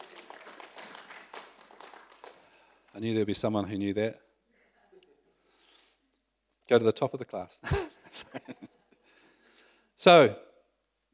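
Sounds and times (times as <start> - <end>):
audience clapping: 0.0 - 3.4
speech: 3.0 - 4.2, 6.7 - 8.7, 10.0 - 10.5.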